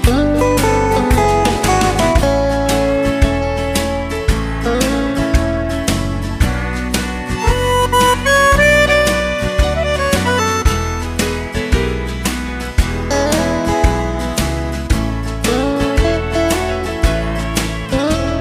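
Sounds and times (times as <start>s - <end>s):
accordion melody: 0.1s - 3.4s, 4.7s - 18.3s.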